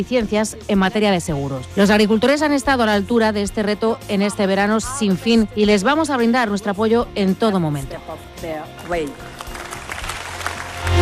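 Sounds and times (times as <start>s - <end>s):
speech: 0.0s - 9.4s
European Parliament applause after a speech in Strasbourg: 9.2s - 11.0s.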